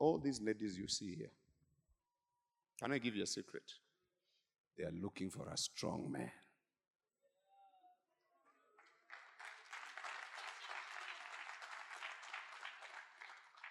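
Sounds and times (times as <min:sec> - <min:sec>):
speech: 0:00.0 - 0:01.4, 0:02.8 - 0:03.8, 0:04.8 - 0:06.4
audience applause: 0:08.8 - 0:13.6.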